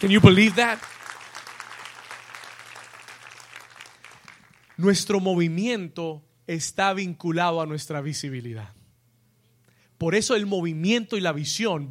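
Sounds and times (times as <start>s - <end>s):
speech: 0.0s - 1.0s, 4.8s - 8.8s, 10.0s - 11.8s
audience applause: 0.0s - 4.8s.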